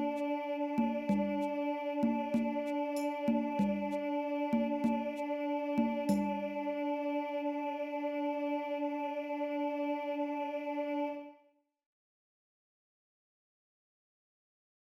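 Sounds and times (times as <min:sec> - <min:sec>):
alto choir singing: 0:00.0 - 0:11.5.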